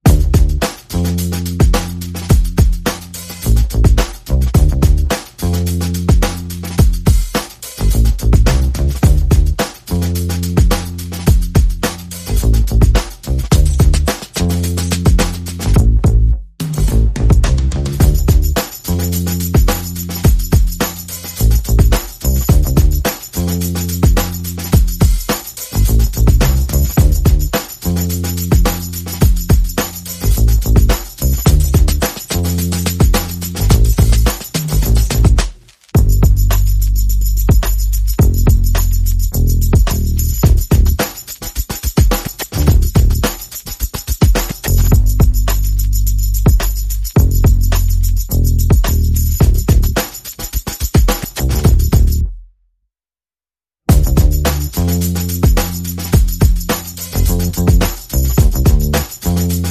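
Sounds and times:
bass: 0.0s - 41.2s, 42.4s - 43.4s, 44.6s - 50.2s, 51.3s - 52.4s, 53.9s - 59.6s
percussion: 0.0s - 52.4s, 53.9s - 59.6s.

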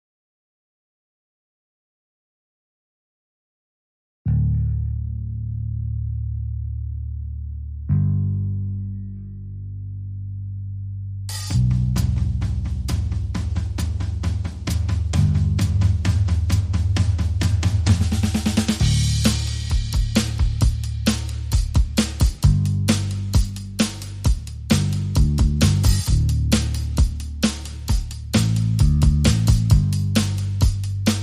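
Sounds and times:
bass: 4.3s - 31.2s
drums: 11.3s - 31.2s.

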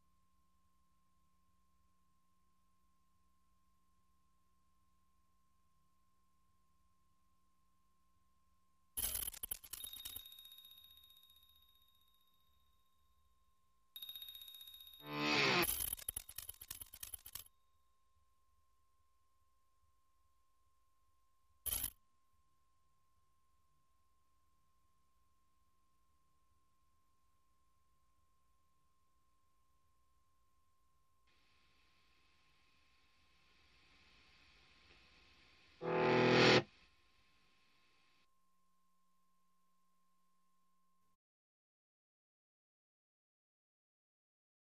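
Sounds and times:
percussion: 9.0s - 13.1s, 14.0s - 17.7s, 21.6s - 22.0s
sound effects: 35.8s - 36.6s.

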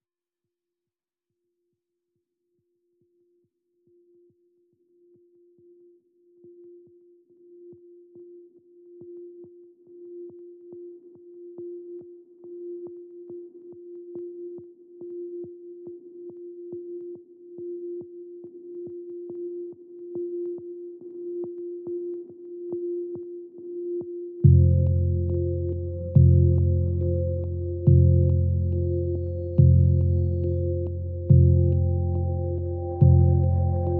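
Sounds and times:
dark meditation chimes without melody: 24.6s - 33.9s.

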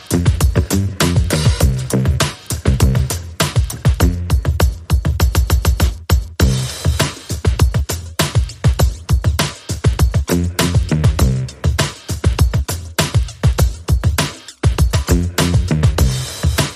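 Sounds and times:
bass: 0.0s - 16.7s
drums: 0.0s - 16.7s.

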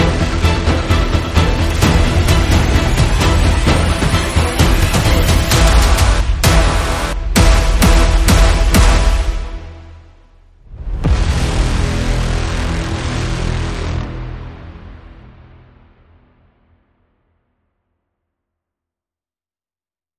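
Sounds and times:
brass instruments: 0.0s - 16.1s.

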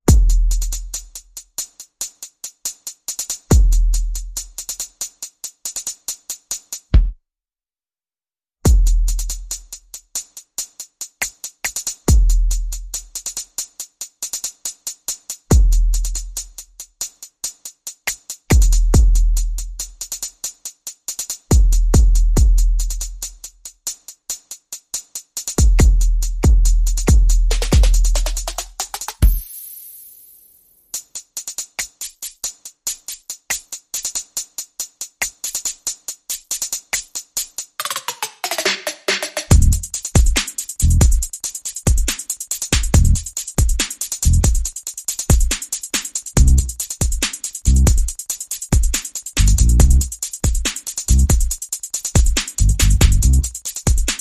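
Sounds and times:
percussion: 0.0s - 7.2s, 8.6s - 54.1s
bass: 0.1s - 1.1s, 8.7s - 9.6s, 12.1s - 13.0s, 15.5s - 16.4s, 18.5s - 19.9s, 21.6s - 23.3s, 25.6s - 28.6s, 39.5s - 39.9s, 40.8s - 41.2s, 42.8s - 43.3s, 44.2s - 44.6s, 46.4s - 46.7s, 47.7s - 48.0s, 49.4s - 50.1s, 51.1s - 51.4s, 52.6s - 53.5s.

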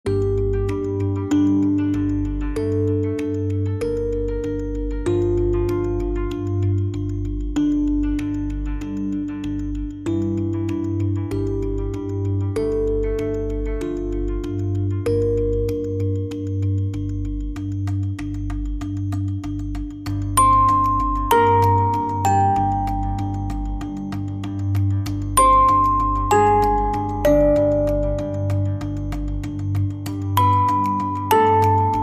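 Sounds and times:
marimba: 0.1s - 32.0s.

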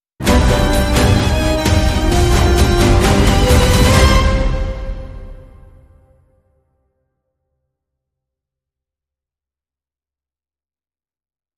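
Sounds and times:
tango sting: 0.2s - 6.1s.

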